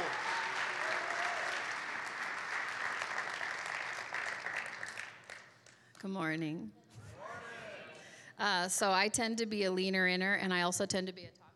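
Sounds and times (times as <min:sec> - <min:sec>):
church congregation applause welcoming a speaker: 0:00.0 - 0:05.8
speech: 0:06.0 - 0:06.8, 0:08.4 - 0:11.4.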